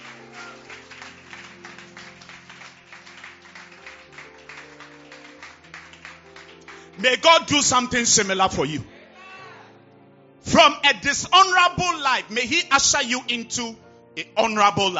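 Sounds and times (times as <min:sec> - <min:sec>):
audience clapping: 0:00.0 - 0:08.3
speech: 0:07.0 - 0:08.9, 0:10.6 - 0:14.9.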